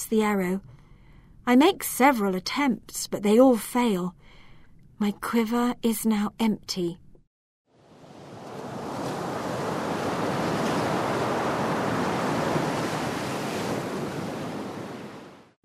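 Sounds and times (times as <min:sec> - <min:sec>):
speech: 0:00.0 - 0:00.8, 0:01.5 - 0:04.2, 0:05.0 - 0:07.0
roar of an enormous ocean wave: 0:07.8 - 0:15.6.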